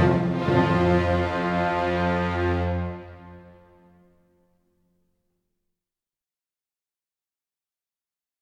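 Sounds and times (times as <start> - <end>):
hornpipe tune: 0.0 - 4.0.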